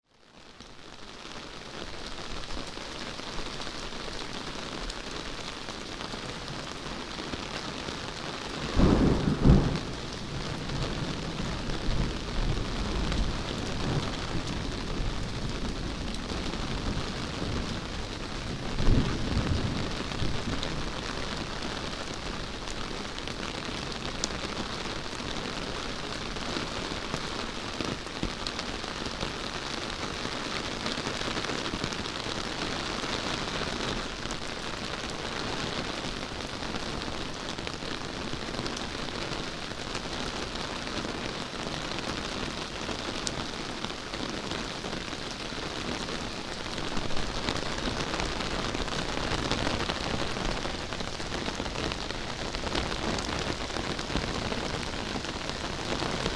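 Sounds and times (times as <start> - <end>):
rain: 0.0 - 56.3.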